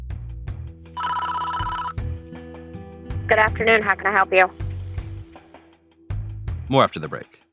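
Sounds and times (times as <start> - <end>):
buzzing electronic telephone ring: 1.0 - 2.0
speech: 3.3 - 4.6, 6.7 - 7.4.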